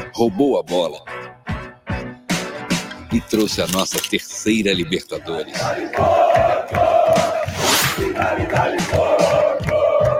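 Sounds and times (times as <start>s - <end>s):
speech: 0.2s - 1.2s, 3.1s - 6.9s, 8.2s - 9.4s
stadium crowd roaring in Uruguay: 5.4s - 10.1s.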